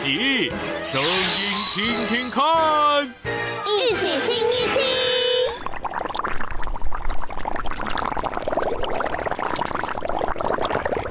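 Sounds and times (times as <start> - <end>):
speech: 0.0 - 4.4
water boiling in a kitchen pot: 4.8 - 11.0.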